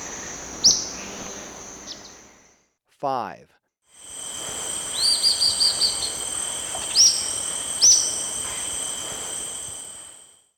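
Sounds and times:
Olive-faced Flatbill calling: 0.0 - 2.5, 4.2 - 10.0
insects: 0.0 - 2.6, 3.9 - 10.5
speech: 3.0 - 3.6.

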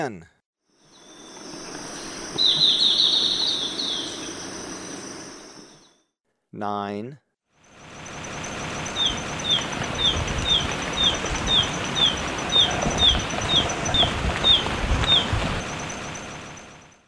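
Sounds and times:
speech: 0.0 - 0.4, 6.5 - 7.2
background hiss: 0.7 - 6.0, 7.6 - 17.0
steady high insect drone: 0.7 - 6.1, 7.6 - 17.0
Golden-faced tyrannulet chattering: 2.3 - 4.5, 8.8 - 15.3.

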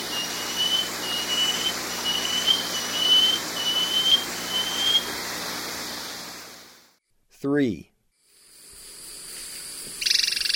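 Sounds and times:
Banded Antbird whistles: 0.0 - 5.1
background hiss: 0.0 - 6.9, 8.0 - 10.5.

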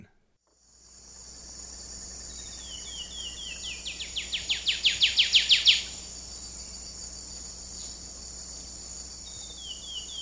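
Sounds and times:
buff-rumped warbler singing in the eastern lowlands of South America: 1.0 - 10.2.

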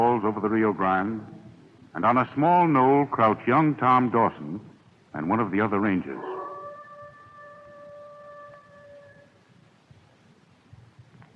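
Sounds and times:
speech: 0.2 - 6.3
coyote howling: 6.2 - 9.4.

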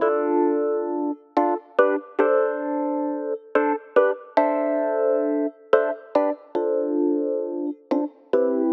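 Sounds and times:
Rhodes electric piano: 0.0 - 8.7.

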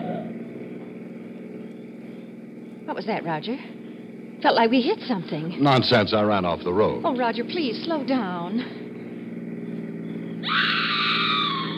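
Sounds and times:
speech: 2.9 - 3.8, 4.4 - 8.8
woman screaming: 10.4 - 11.7.

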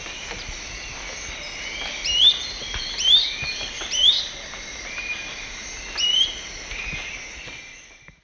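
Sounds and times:
Tolmomyias poliocephalus song in South American eastern lowlands: 0.0 - 8.2.

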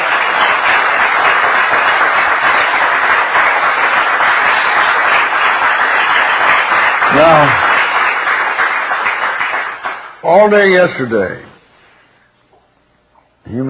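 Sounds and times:
audience applause: 0.0 - 10.8
speech: 10.3 - 11.5, 13.5 - 13.6.

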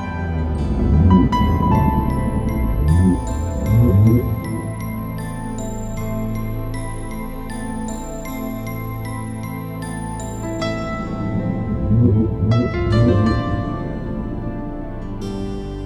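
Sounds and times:
whales singing: 0.1 - 15.6.

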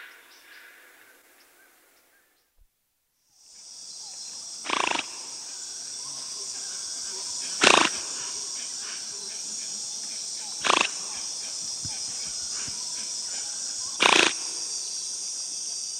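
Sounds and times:
giant otter in the South American rainforest: 4.6 - 5.1, 10.3 - 14.3.

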